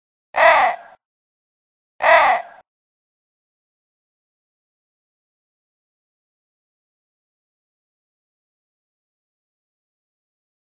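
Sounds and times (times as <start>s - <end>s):
crow: 0.4s - 1.0s, 2.0s - 2.6s.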